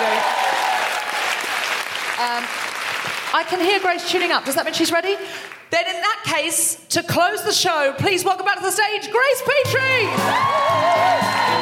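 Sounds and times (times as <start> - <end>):
audience applause: 0.0 - 3.6, 10.1 - 11.5
speech: 2.2 - 2.6, 3.3 - 11.5.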